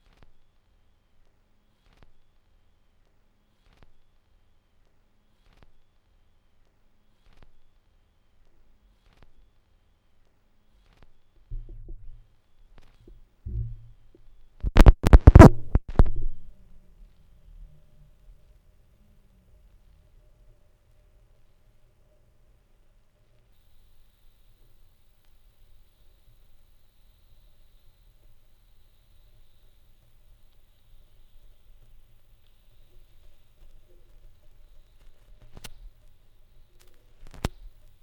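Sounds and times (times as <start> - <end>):
vinyl record noise: 11.5 - 12.2, 12.9 - 16.8, 23.7 - 38.0.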